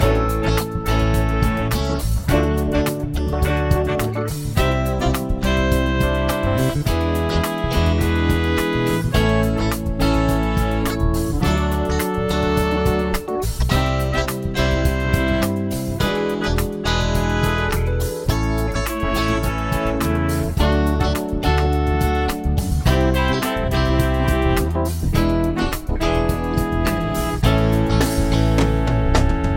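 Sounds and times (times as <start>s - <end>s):
chord progression with mixture: 0.0s - 29.5s.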